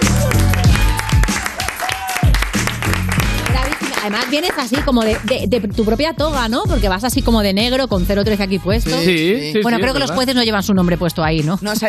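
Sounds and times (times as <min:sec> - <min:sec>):
audience applause: 0:00.0 - 0:05.4
speech: 0:04.0 - 0:11.8.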